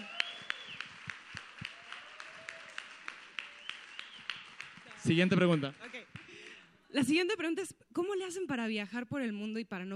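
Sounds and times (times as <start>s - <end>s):
audience applause: 0.0s - 6.6s
speech: 5.0s - 6.0s, 6.9s - 9.9s.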